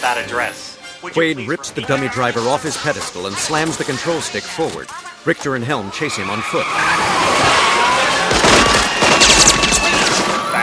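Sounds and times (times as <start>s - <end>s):
speech: 0.0s - 7.1s
gunfire aimed at a spinning moving cab: 8.2s - 10.6s.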